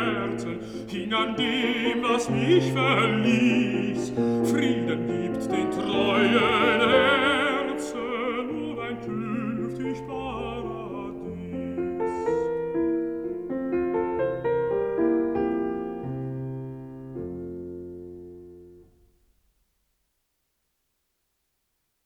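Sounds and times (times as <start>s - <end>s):
person singing: 0.0s - 12.8s
piano: 0.0s - 19.5s.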